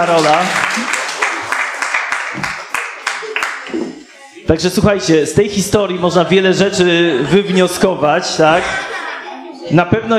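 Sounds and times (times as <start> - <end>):
speech: 0.0 - 0.9, 4.5 - 8.9, 9.7 - 10.1
audience applause: 0.0 - 3.7
laughter: 6.9 - 10.1.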